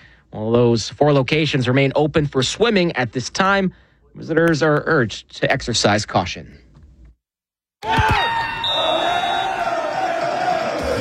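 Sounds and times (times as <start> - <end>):
speech: 0.3 - 6.6
soccer fans chanting during a FIFA World Cup match in Vancouver: 8.7 - 10.9.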